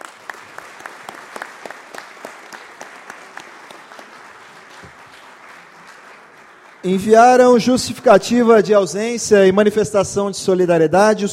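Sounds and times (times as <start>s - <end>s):
audience applause: 0.0s - 7.5s
speech: 6.8s - 11.3s.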